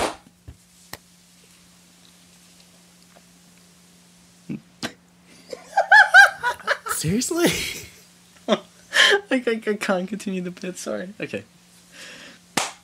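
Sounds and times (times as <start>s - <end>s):
burst of laughter: 5.5s - 7.8s
speech: 7.0s - 7.9s, 9.3s - 11.6s
hand clap marking a recording cut: 12.6s - 12.8s.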